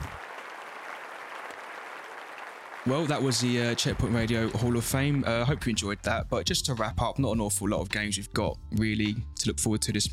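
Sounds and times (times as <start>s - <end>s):
crowd applause: 0.0s - 5.9s
speech: 2.8s - 10.1s.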